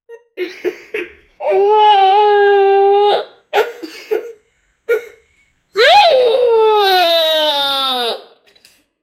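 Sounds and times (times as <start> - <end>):
fourteen-year-old boy vomiting: 1.4 - 3.9, 5.8 - 8.4.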